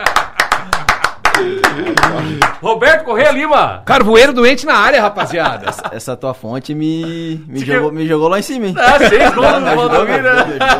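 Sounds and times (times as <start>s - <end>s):
round of applause: 0.0s - 2.6s
laughter: 0.4s - 2.6s, 4.9s - 6.2s, 8.7s - 10.7s
speech: 2.2s - 10.7s.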